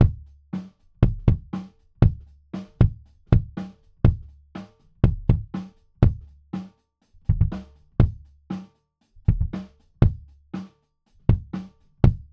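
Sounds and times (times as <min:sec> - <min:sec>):
kick drum: 0:00.0 - 0:06.4, 0:07.3 - 0:08.4, 0:09.3 - 0:10.4, 0:11.3 - 0:12.3.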